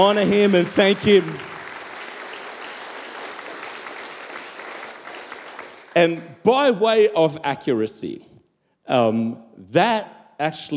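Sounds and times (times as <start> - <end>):
speech: 0.0 - 1.5, 6.0 - 8.3, 8.9 - 10.7
church congregation applauding at a Sunday service: 0.0 - 6.2.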